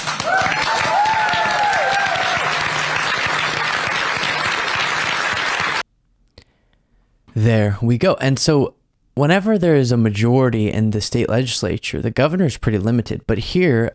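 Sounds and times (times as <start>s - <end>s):
people clapping after a budget signing: 0.0s - 5.8s
speech: 7.4s - 13.9s.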